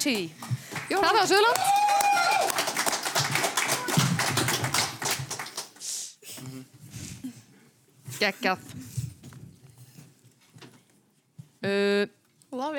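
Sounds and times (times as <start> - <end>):
speech: 0.0 - 1.8, 8.2 - 8.8, 11.6 - 12.7
lively hand clapping from a few people: 0.0 - 5.8.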